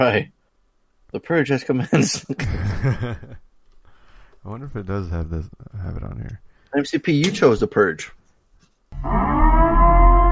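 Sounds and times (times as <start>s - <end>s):
speech: 0.0s - 0.4s, 1.1s - 3.5s, 4.4s - 8.2s, 8.9s - 9.6s
laughter: 1.9s - 3.4s
air horn siren blaring: 9.0s - 10.3s.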